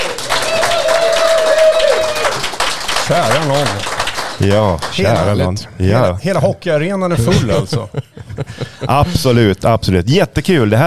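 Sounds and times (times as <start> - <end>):
live audience applause: 0.0 - 5.5
speech: 3.1 - 10.8
laughter: 7.1 - 9.5.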